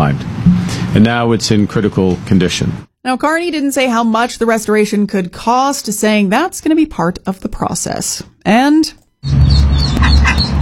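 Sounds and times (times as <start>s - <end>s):
speech: 1.0s - 10.5s
ducklings peeping, trapped in a Saskatoon storm sewer: 9.2s - 10.6s.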